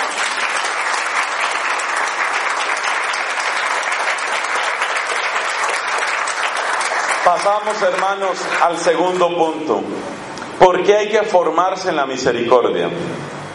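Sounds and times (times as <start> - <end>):
applause: 0.0 - 8.9
speech: 7.3 - 10.2, 10.9 - 13.4.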